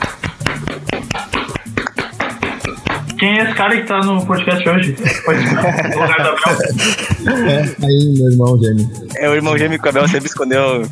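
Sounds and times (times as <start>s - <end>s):
hand clapping: 0.0s - 3.8s
voices talking and laughing: 3.2s - 8.0s, 9.2s - 10.9s
speech: 3.2s - 10.9s.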